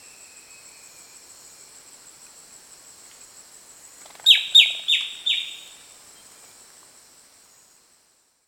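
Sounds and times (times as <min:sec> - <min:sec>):
steady high hiss: 0:00.0 - 0:08.4
sharp downward bird chirps: 0:04.2 - 0:05.8.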